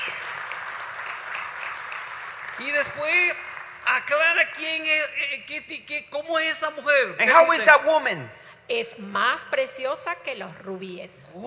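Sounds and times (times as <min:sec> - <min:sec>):
church congregation clapping during a bilingual sermon: 0:00.0 - 0:04.7
speech: 0:02.6 - 0:11.4.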